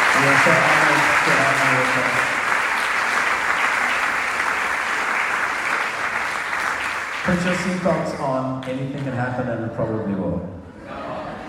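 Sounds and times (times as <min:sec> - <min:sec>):
audience applause welcoming guests onto a show: 0:00.0 - 0:09.4
speech: 0:00.2 - 0:02.3, 0:07.3 - 0:10.6
laughter: 0:09.5 - 0:11.4.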